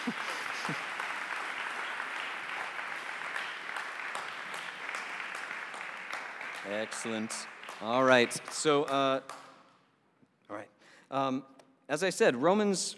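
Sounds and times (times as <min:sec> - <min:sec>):
audience clapping: 0:00.0 - 0:09.6
speech: 0:06.7 - 0:09.4, 0:10.5 - 0:12.9.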